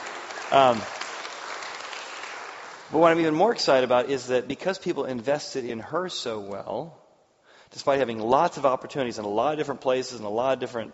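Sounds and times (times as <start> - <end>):
audience applause: 0.0 - 3.4
speech: 0.5 - 1.0, 2.9 - 7.0, 7.7 - 10.9.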